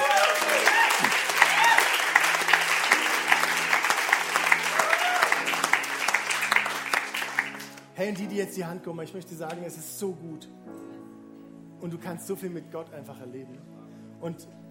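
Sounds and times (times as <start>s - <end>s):
faint voices and cheers: 0.0s - 2.1s, 4.6s - 5.6s
crowd applauding: 0.0s - 7.9s
speech: 8.0s - 10.8s, 11.8s - 14.6s.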